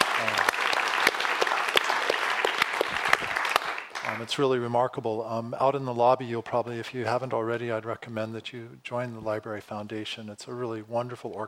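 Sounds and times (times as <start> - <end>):
audience clapping: 0.0 - 4.4
speech: 4.2 - 11.4.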